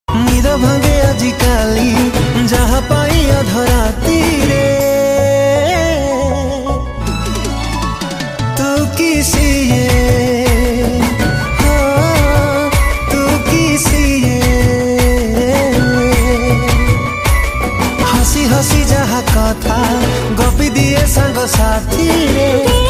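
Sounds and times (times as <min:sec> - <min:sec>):
Odia song: 0:00.1 - 0:22.8.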